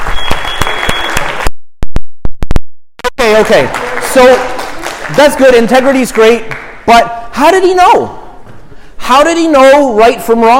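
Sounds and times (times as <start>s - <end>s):
crowd clapping: 0.0s - 1.5s, 3.1s - 6.9s
speech: 3.3s - 8.2s, 9.1s - 10.5s.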